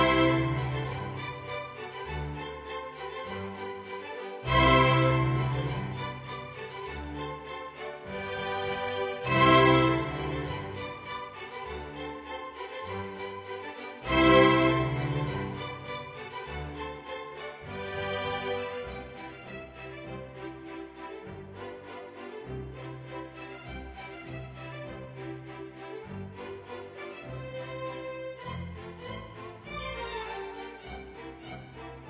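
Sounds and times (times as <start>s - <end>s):
polka music: 0.0s - 3.8s, 4.4s - 20.0s.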